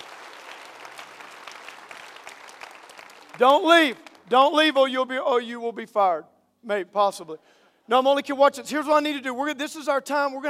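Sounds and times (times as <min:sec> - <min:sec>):
audience clapping: 0:00.0 - 0:04.4
speech: 0:03.4 - 0:10.4.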